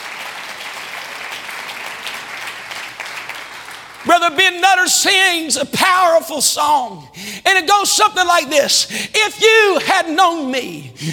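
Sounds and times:
crowd clapping: 0.0s - 4.6s
speech: 4.0s - 11.1s.

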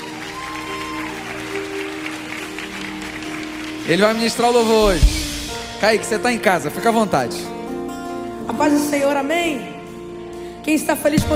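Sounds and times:
audience applause: 0.0s - 5.0s
speech: 3.9s - 5.2s, 5.8s - 7.5s, 8.5s - 9.7s, 10.6s - 11.3s.

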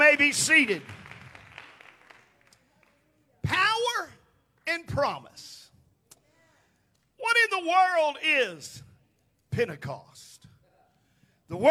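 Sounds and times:
seated audience clapping hands: 0.0s - 3.0s
speech: 0.1s - 1.0s, 4.7s - 5.6s, 7.3s - 8.9s, 9.6s - 10.3s, 11.5s - 11.6s.

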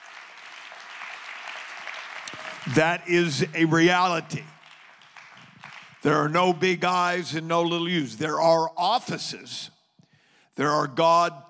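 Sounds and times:
audience clapping hands: 0.0s - 6.6s
speech: 2.7s - 4.5s, 6.0s - 9.8s, 10.6s - 11.4s.

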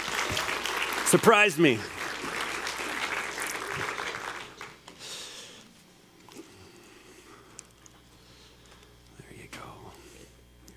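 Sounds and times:
audience applause at a Christmas morning gathering: 0.0s - 5.3s
speech: 1.1s - 2.0s.

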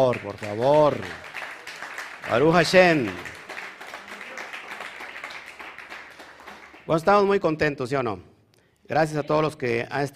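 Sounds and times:
speech: 0.0s - 1.3s, 2.3s - 3.4s, 6.9s - 8.3s, 8.9s - 10.1s
audience applause: 0.0s - 7.0s.

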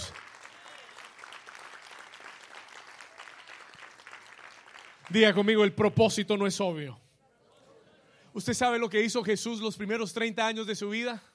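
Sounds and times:
audience applause: 0.0s - 5.2s
speech: 5.1s - 7.0s, 8.4s - 11.3s.

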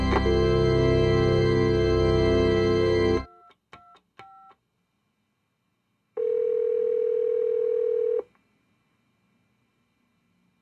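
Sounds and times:
telephone dial tone: 0.1s - 3.5s, 6.2s - 8.3s.

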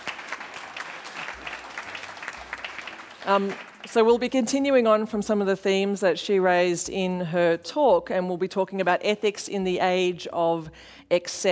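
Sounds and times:
audience applause: 0.0s - 4.2s
speech: 3.2s - 11.5s.

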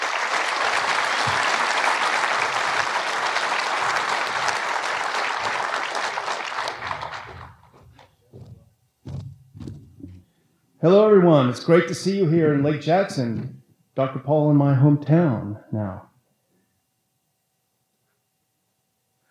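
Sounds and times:
audience applause: 0.0s - 8.1s
speech: 10.8s - 16.1s.

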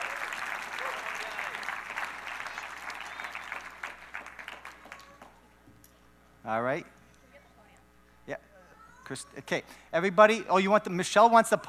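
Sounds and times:
audience applause: 0.0s - 5.4s
speech: 6.5s - 7.0s, 8.3s - 8.5s, 9.1s - 11.6s.

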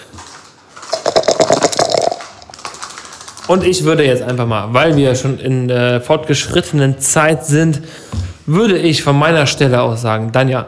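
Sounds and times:
dice being shaken and rolled: 0.2s - 3.8s
speech: 3.5s - 10.6s.

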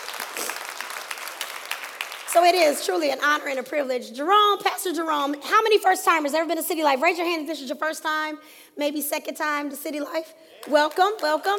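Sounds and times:
crowd applause: 0.0s - 2.9s
speech: 2.3s - 11.5s.

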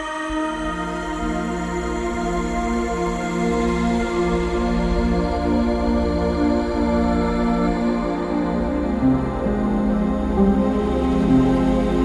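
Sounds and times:
ambient piano: 0.0s - 12.0s.

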